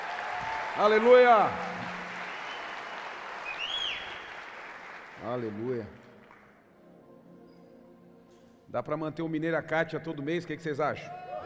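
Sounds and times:
high whistle or cheer: 0.0 - 4.4
crowd applauding: 0.0 - 6.6
speech: 0.8 - 1.7, 5.2 - 6.0, 8.7 - 11.2.

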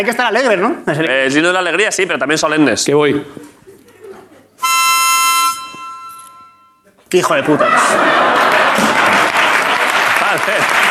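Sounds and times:
speech: 0.0 - 3.5, 7.1 - 9.1, 10.3 - 10.9
laughter: 3.2 - 4.6, 6.8 - 10.9
audience applause: 7.7 - 10.9.

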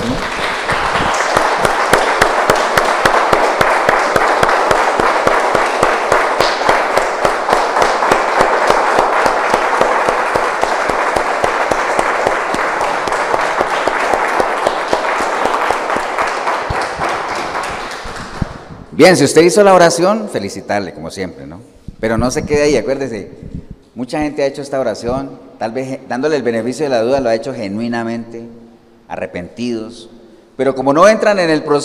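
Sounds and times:
audience applause: 0.0 - 18.8
speech: 19.0 - 23.4, 24.0 - 28.5, 29.1 - 31.8.

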